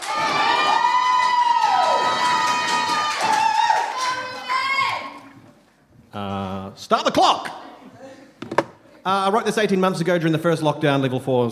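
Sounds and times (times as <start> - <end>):
audience applause: 0.0 - 4.8
speech: 6.9 - 7.6, 9.0 - 11.5.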